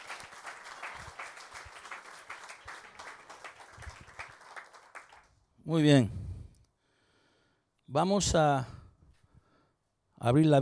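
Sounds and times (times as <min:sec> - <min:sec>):
audience applause: 0:00.0 - 0:05.3
speech: 0:05.7 - 0:06.2, 0:07.9 - 0:08.8, 0:10.2 - 0:10.6.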